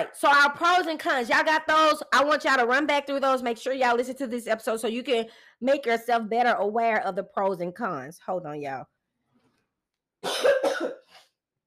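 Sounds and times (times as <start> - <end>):
speech: 0.0 - 8.9
person coughing: 10.2 - 11.4.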